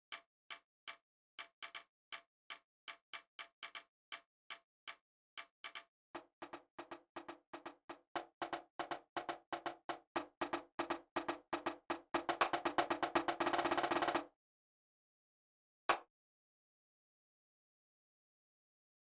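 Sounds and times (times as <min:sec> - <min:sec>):
marching cadence on a snare drum: 0:05.6 - 0:14.3.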